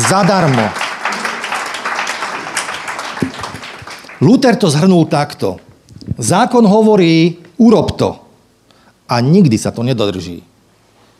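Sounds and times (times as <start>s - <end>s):
audience applause: 0.0s - 4.5s
speech: 0.1s - 0.8s, 4.2s - 8.2s, 9.1s - 10.5s.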